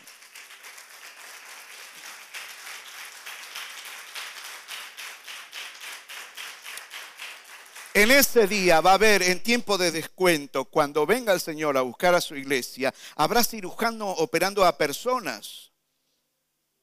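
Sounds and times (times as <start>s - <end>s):
audience applause: 0.0s - 8.4s
speech: 8.0s - 15.7s.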